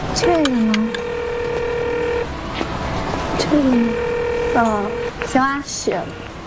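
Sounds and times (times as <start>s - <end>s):
speech: 0.2s - 0.8s, 4.5s - 6.3s
phone dialing tones: 0.2s - 2.3s, 3.6s - 5.3s.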